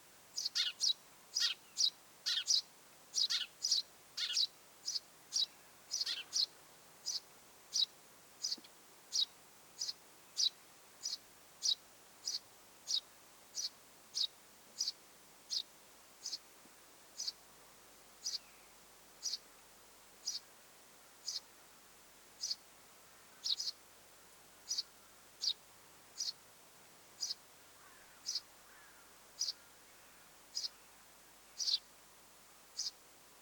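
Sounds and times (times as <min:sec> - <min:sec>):
Eurasian tree sparrow chirping: 0:00.4 - 0:16.4, 0:17.2 - 0:17.4, 0:18.2 - 0:18.5, 0:19.2 - 0:19.4, 0:20.2 - 0:20.4, 0:21.2 - 0:21.4, 0:22.4 - 0:22.6, 0:23.4 - 0:23.8, 0:24.7 - 0:25.6, 0:26.2 - 0:26.4, 0:27.2 - 0:27.4, 0:28.2 - 0:28.5, 0:29.4 - 0:29.6, 0:30.5 - 0:30.8, 0:31.6 - 0:31.9, 0:32.8 - 0:33.0.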